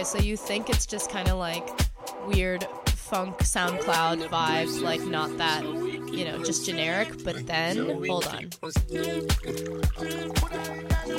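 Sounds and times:
song with sustained chords and steady beat: 0.0s - 11.1s
speech: 0.0s - 11.1s
water pouring sample in a song: 8.9s - 11.0s.

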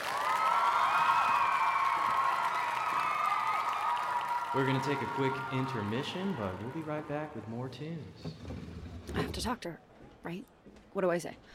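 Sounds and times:
audience applause: 0.0s - 8.0s
speech: 4.5s - 11.5s.

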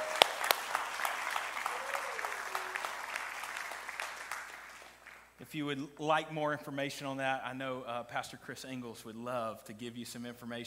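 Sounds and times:
church congregation applauding to welcome visiting friends: 0.0s - 5.4s
speech: 5.5s - 10.6s.

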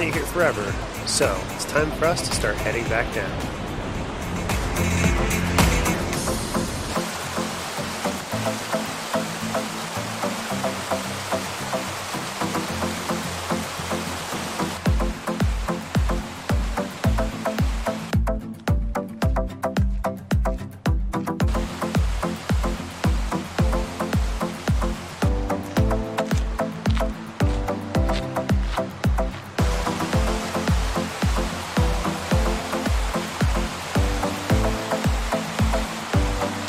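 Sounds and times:
speech: 0.0s - 3.6s, 4.8s - 5.1s
roaring waterfall: 0.0s - 18.2s, 21.4s - 36.6s
regular low thumping beat: 4.0s - 6.9s, 14.8s - 36.6s.

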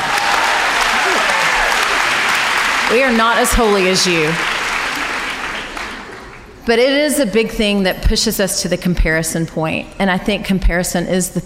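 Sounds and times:
audience clapping: 0.0s - 6.6s
speech: 2.9s - 4.5s, 6.6s - 11.4s.

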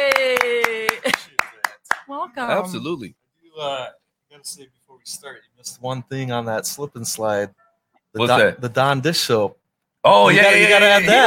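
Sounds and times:
hand claps: 0.0s - 2.2s
speech: 2.2s - 11.2s.

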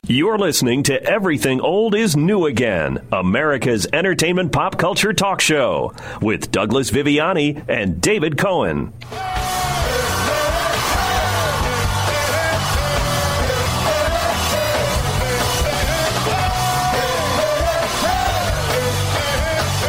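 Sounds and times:
speech: 0.1s - 9.5s
whoops and yells: 9.1s - 15.0s, 15.8s - 18.6s
crowd applause: 9.1s - 19.8s.

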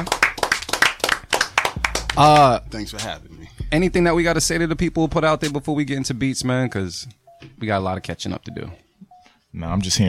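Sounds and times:
hand clapping: 0.0s - 3.1s
speech: 2.2s - 8.8s, 9.5s - 10.0s.

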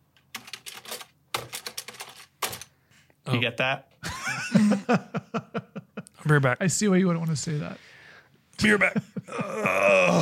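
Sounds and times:
computer keyboard typing: 0.2s - 2.7s
speech: 3.3s - 5.6s, 6.3s - 7.9s, 8.6s - 10.2s
laughter: 4.0s - 6.2s.

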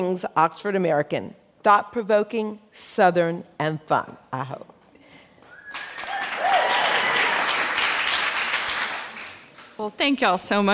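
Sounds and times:
speech: 0.0s - 4.7s, 9.8s - 10.7s
audience applause: 5.6s - 9.7s.

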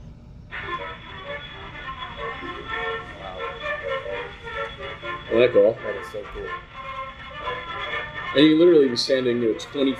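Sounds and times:
giant 2.5-foot-wide metal horn spinning up and blaring: 0.5s - 9.9s
speech: 5.4s - 6.7s, 8.3s - 9.9s.

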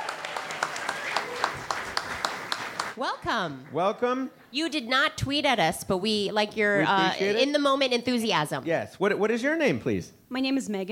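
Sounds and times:
audience applause welcoming a volunteer to the stage: 0.0s - 4.3s
speech: 3.0s - 10.9s.

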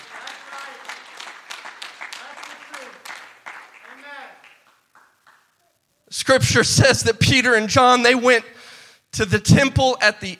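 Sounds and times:
audience applause: 0.0s - 5.5s
speech: 6.1s - 8.6s, 9.2s - 10.3s.

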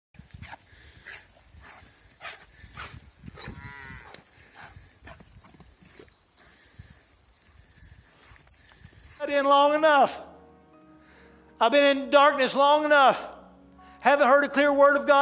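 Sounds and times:
calf mooing after being let out of the barn in spring: 3.4s - 4.2s
speech: 9.3s - 10.3s, 11.6s - 13.3s, 14.0s - 15.2s.

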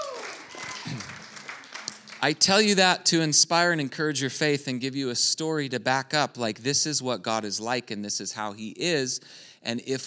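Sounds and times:
crowd clapping: 0.0s - 2.7s
speech: 2.2s - 10.0s.

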